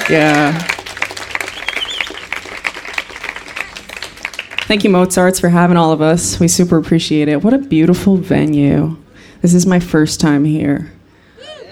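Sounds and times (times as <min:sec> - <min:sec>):
crowd applause: 0:00.0 - 0:05.1
speech: 0:00.1 - 0:00.7, 0:04.7 - 0:11.0.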